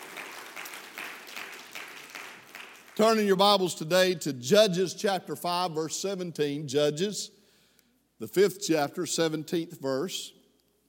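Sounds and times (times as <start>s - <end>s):
audience hand clapping: 0.0s - 3.3s
speech: 3.0s - 7.4s, 8.2s - 10.4s.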